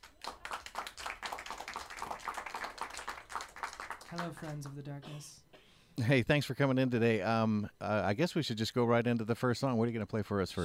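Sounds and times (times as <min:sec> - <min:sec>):
round of applause: 0:00.0 - 0:04.8
speech: 0:04.1 - 0:10.6.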